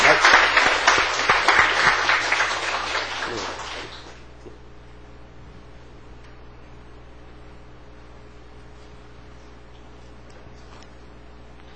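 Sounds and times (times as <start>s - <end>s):
audience applause at a church gathering: 0.0s - 4.2s.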